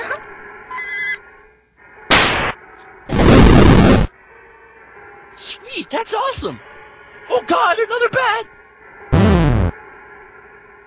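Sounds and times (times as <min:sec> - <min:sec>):
short chirpy video game tone: 0:00.7 - 0:01.3
EarthBound fire-attack noise bursts: 0:02.1 - 0:04.1
speech: 0:05.8 - 0:06.7, 0:07.3 - 0:08.6.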